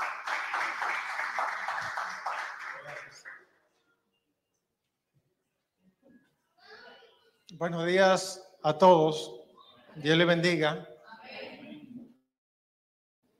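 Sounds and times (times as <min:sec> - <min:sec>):
church audience applause: 0:00.0 - 0:03.4
speech: 0:07.6 - 0:09.4, 0:10.0 - 0:10.9.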